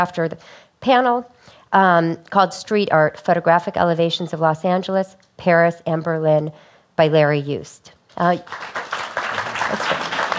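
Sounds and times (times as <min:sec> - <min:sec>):
speech: 0:00.0 - 0:09.0, 0:09.7 - 0:10.0
audience applause: 0:08.5 - 0:10.3.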